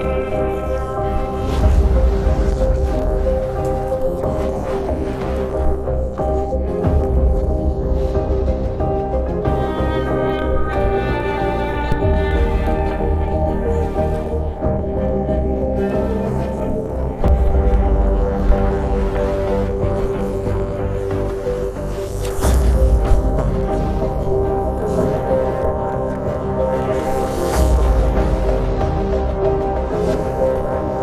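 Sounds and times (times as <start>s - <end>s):
piano trio playing in E flat: 0.0s - 31.0s.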